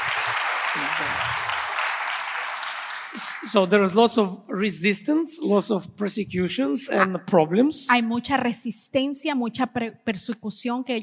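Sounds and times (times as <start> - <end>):
congregation applauding in praise to God in a church: 0.0 - 4.0
speech: 0.8 - 1.6, 3.1 - 11.0.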